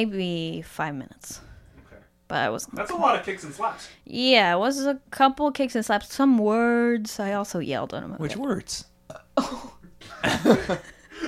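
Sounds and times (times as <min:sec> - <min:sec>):
speech: 0:00.0 - 0:01.5, 0:02.3 - 0:11.0
burping: 0:09.1 - 0:09.8
laughter: 0:09.4 - 0:11.2.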